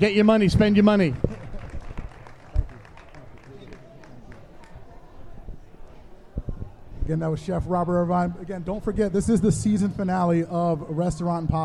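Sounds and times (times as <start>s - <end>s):
speech: 0.0s - 1.3s, 7.1s - 11.6s
crowd noise: 0.0s - 11.6s
audience applause: 1.1s - 4.8s.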